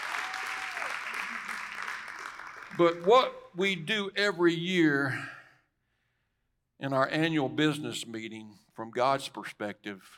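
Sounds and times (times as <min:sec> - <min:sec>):
audience hand clap applause: 0:00.0 - 0:03.5
speech: 0:02.8 - 0:05.4, 0:06.8 - 0:10.1.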